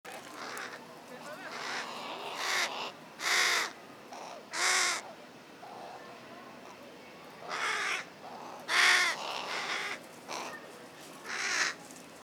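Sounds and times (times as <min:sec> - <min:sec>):
Corvus corone calling: 0:00.3 - 0:00.8, 0:01.4 - 0:05.1, 0:07.5 - 0:10.6, 0:11.2 - 0:11.8.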